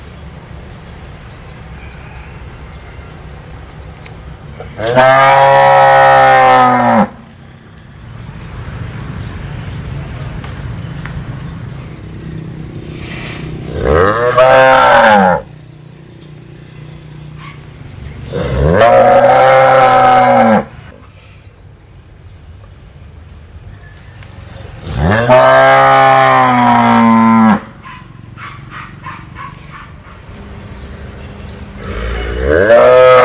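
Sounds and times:
cow mooing: 4.8 - 7.2, 13.7 - 15.5, 18.3 - 20.7, 24.9 - 27.7, 31.8 - 33.2.

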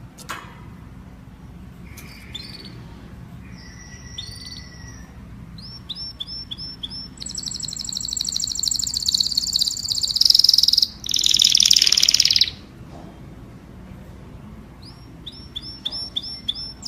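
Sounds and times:
domestic canary singing: 1.8 - 12.8, 14.4 - 16.8.

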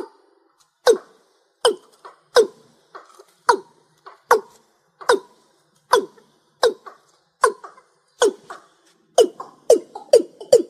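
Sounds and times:
rail calling: 0.8 - 10.6.

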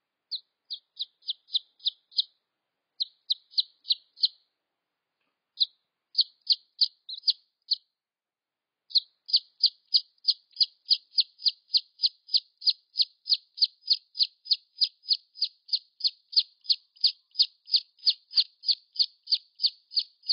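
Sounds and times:
red junglefowl chick peeps: 0.3 - 2.4, 3.0 - 4.4, 5.6 - 7.8, 8.9 - 20.3.

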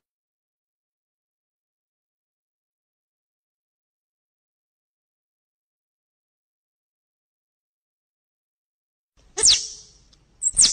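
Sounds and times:
squirrel chattering: 9.4 - 10.7.

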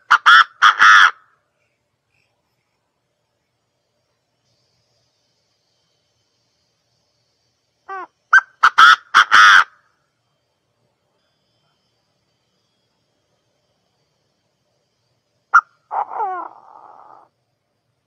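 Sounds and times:
partridge calling: 0.0 - 2.4, 7.8 - 9.9, 15.5 - 17.3.

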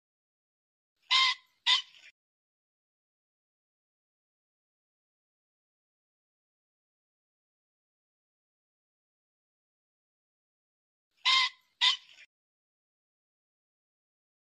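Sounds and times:
pheasant squawking: 1.1 - 2.1, 11.2 - 12.3.

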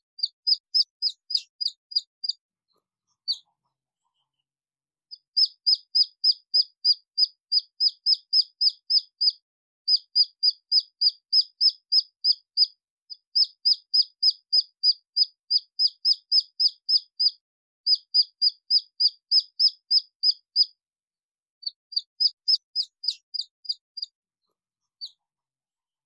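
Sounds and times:
red junglefowl chick peeping: 0.2 - 2.4, 5.1 - 20.7, 21.6 - 24.1.

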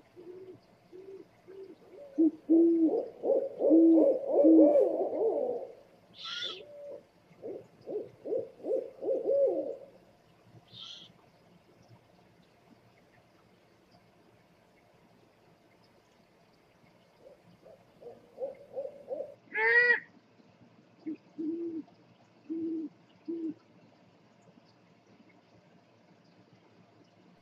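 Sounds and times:
owl hooting: 0.2 - 9.9, 10.7 - 11.1, 17.2 - 20.1.

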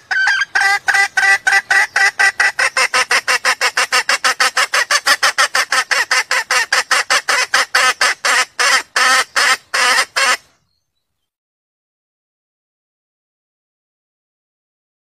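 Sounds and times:
junglefowl mating call clucks: 0.0 - 10.5.

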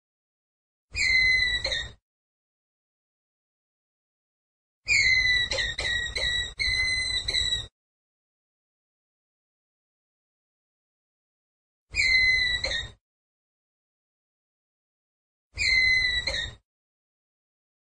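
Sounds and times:
ground squirrel whistled call: 1.0 - 2.0, 4.9 - 7.7, 11.9 - 13.0, 15.6 - 16.6.

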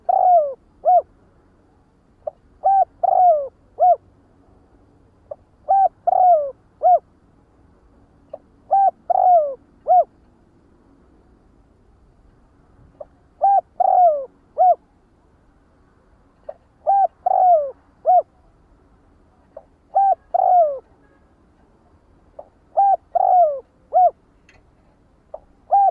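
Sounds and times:
spotted dove cooing: 0.0 - 1.1, 2.2 - 4.0, 5.3 - 7.1, 8.6 - 10.1, 13.0 - 14.8, 16.5 - 18.4, 19.6 - 20.9, 22.4 - 24.2, 25.3 - 25.8.

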